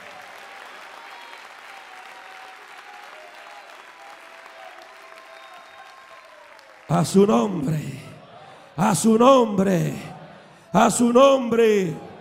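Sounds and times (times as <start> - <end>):
audience applause: 0.0 - 8.7
speech: 6.9 - 8.1, 8.8 - 10.1, 10.7 - 12.1.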